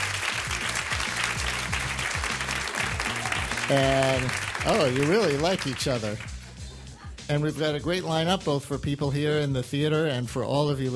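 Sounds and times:
audience applause: 0.0 - 6.5
speech: 3.7 - 6.3, 7.3 - 10.9.

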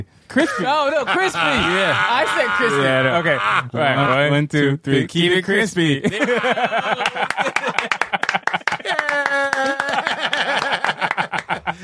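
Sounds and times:
speech: 0.0 - 8.0
laughter: 0.3 - 4.3, 6.0 - 11.8
applause: 6.9 - 11.6.

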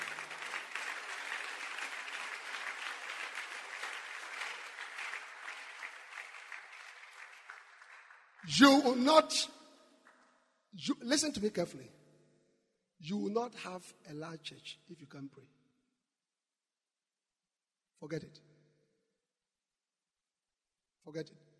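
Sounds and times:
audience applause: 0.0 - 9.1
speech: 8.5 - 9.6, 10.8 - 12.0, 13.0 - 15.6, 18.0 - 18.5, 21.0 - 21.4.

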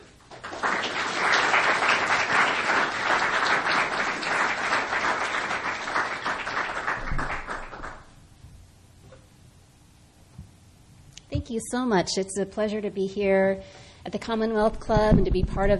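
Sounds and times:
audience applause welcoming speakers at a Commonwealth Club program: 0.3 - 8.2
speech: 11.5 - 15.7.

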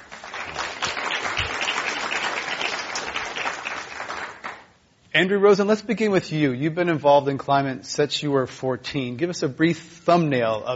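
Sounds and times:
audience applause at a climate discussion event: 0.0 - 4.7
speech: 5.2 - 10.7.

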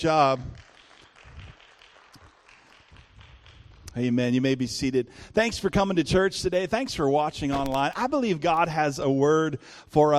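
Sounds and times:
speech: 0.0 - 0.6, 4.0 - 10.1
audience applause: 0.0 - 4.0.

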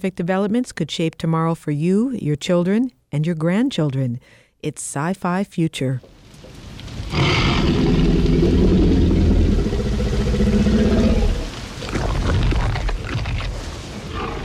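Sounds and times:
speech: 0.0 - 6.2
hungry T-Rex growling in the film Jurassic Park: 7.1 - 12.8, 14.1 - 14.4.

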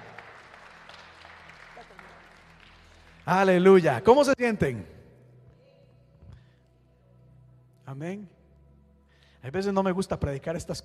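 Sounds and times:
audience applause: 0.0 - 3.4
speech: 3.3 - 5.0, 7.9 - 8.4, 9.4 - 10.8.

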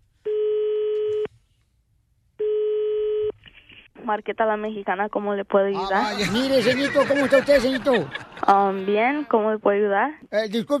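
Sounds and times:
faint noise: 0.0 - 10.7
phone call ringing tones: 0.3 - 1.3, 2.4 - 3.3
speech: 4.1 - 10.7
laughter: 5.8 - 9.3.

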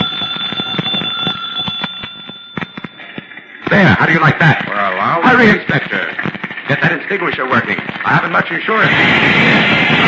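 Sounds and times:
electric doorbell ringing: 0.0 - 3.6
speech: 3.7 - 10.0.

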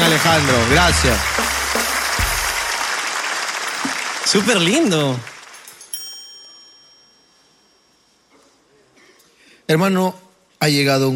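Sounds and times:
audience applause: 0.0 - 5.8
speech: 0.1 - 1.4, 4.3 - 5.3, 9.7 - 11.1.

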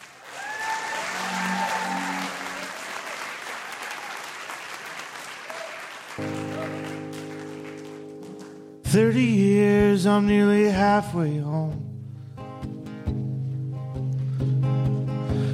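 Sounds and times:
musical instruments: 0.0 - 4.0, 6.2 - 15.5
audience applause welcoming a band: 0.0 - 8.7
speech: 8.9 - 11.8.

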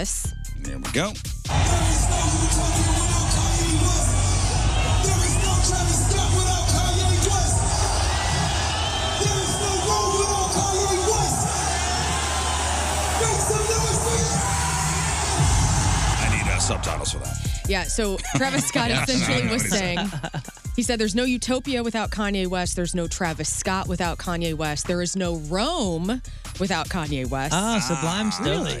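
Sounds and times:
speech: 0.0 - 1.3, 16.7 - 28.7
large concert crowd cheering at surprise appearance: 1.5 - 17.3, 18.4 - 20.2, 27.5 - 28.7
laughter: 18.0 - 20.8, 27.5 - 28.7.

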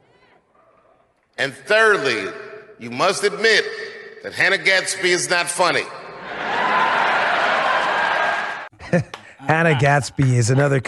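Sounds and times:
speech: 1.4 - 6.0, 8.9 - 10.8
laughter: 6.0 - 10.8
audience applause: 6.4 - 8.7.

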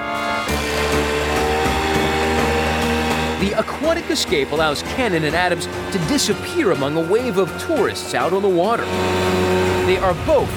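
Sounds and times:
wave runner engine revving: 0.0 - 10.5
speech: 3.4 - 10.5.

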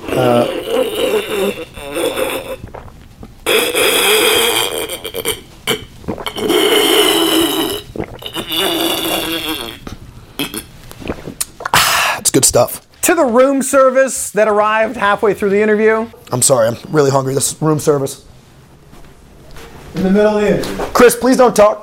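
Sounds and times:
loud water sipping: 0.0 - 12.2
speech: 0.2 - 1.7, 12.6 - 18.3, 20.0 - 21.8.

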